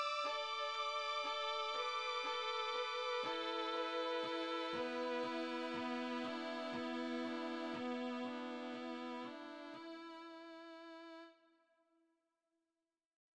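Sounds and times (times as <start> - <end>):
canonic quartet music: 0.0 - 10.1.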